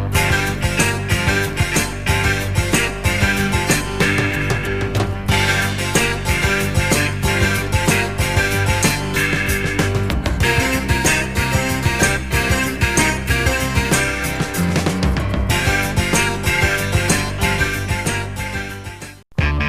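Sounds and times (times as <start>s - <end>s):
vibrato tone: 0.2s - 19.6s.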